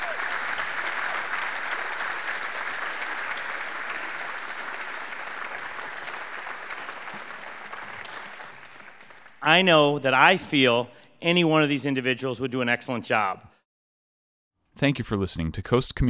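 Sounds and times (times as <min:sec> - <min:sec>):
audience applause: 0:00.0 - 0:09.7
speech: 0:09.5 - 0:13.5, 0:14.8 - 0:16.0.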